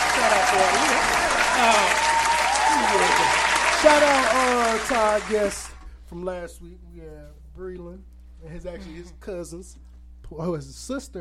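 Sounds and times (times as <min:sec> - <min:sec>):
clapping: 0:00.0 - 0:05.8
speech: 0:00.3 - 0:02.1, 0:02.8 - 0:11.2.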